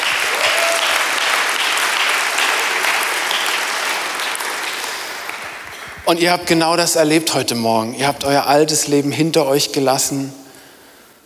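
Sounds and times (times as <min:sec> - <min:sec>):
audience applauding: 0:00.0 - 0:06.3
speech: 0:06.1 - 0:10.4.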